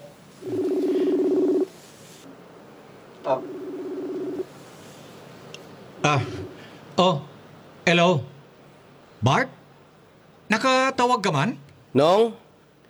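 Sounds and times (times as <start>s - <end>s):
telephone ringing tone of a call being placed: 0.0s - 1.7s, 3.4s - 4.4s
speech: 3.3s - 3.6s, 6.1s - 6.4s, 7.0s - 7.2s, 7.9s - 8.3s, 11.2s - 12.4s.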